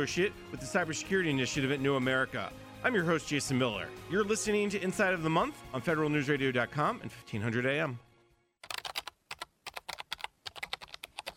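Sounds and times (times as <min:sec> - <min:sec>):
speech: 0:00.0 - 0:08.1
typing on a computer keyboard: 0:08.6 - 0:11.3.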